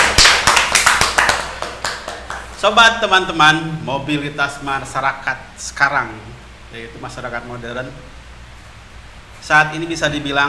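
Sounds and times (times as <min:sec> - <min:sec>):
hand clapping: 0:00.0 - 0:02.6
speech: 0:02.6 - 0:08.2, 0:09.4 - 0:10.4.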